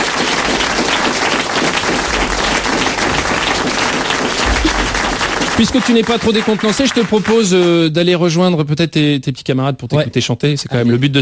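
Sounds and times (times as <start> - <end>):
audience applause: 0.0 - 7.9
speech: 5.6 - 11.1.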